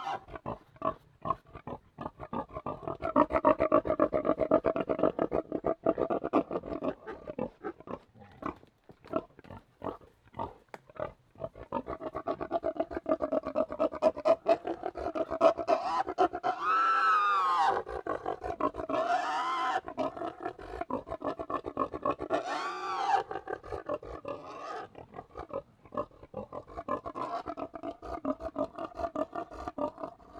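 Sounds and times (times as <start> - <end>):
Tamworth pigs grunting: 0.0 - 30.3.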